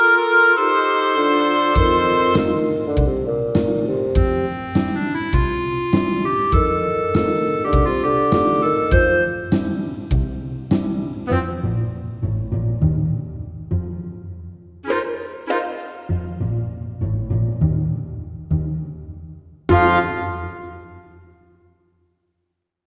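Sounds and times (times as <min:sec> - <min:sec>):
wind instruments: 0:00.0 - 0:10.0, 0:11.2 - 0:12.4, 0:14.8 - 0:16.9, 0:19.7 - 0:21.3
pizzicato strings: 0:01.8 - 0:21.0.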